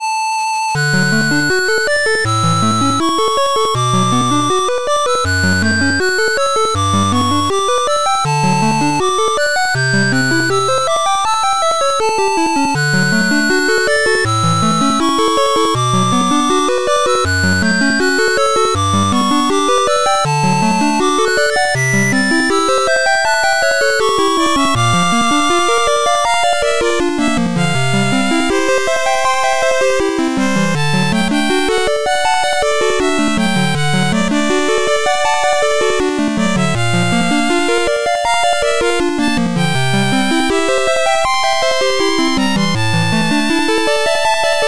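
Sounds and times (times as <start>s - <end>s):
8-bit chiptune music: 0.0s - 44.6s.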